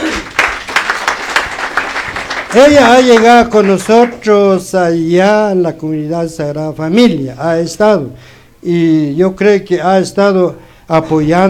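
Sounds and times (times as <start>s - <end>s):
audience at a church brotherhood gathering clapping: 0.0s - 4.5s
speech: 2.5s - 11.4s.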